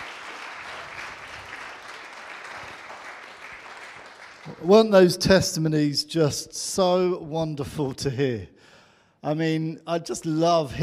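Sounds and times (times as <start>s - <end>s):
audience applause: 0.0s - 4.7s
speech: 4.4s - 8.6s, 9.2s - 10.8s.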